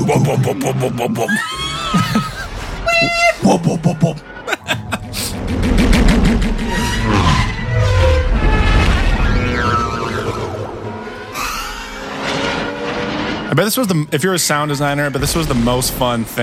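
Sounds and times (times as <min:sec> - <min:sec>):
laughter: 0:00.0 - 0:05.4
speech: 0:00.1 - 0:02.3, 0:03.0 - 0:04.8, 0:13.5 - 0:16.4
podracer engines roaring and whining in a race sequence: 0:05.1 - 0:13.8.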